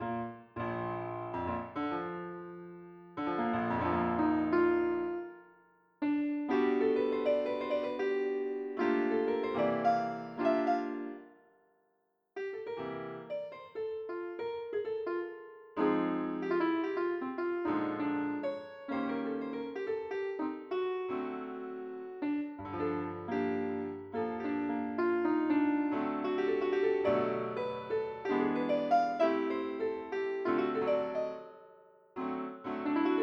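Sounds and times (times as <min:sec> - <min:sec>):
piano: 0:00.0 - 0:11.7, 0:12.4 - 0:33.2.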